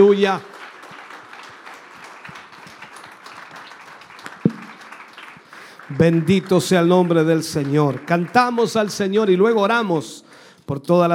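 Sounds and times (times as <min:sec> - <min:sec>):
speech: 0:00.0 - 0:00.5, 0:05.9 - 0:11.1
audience applause: 0:00.0 - 0:09.2.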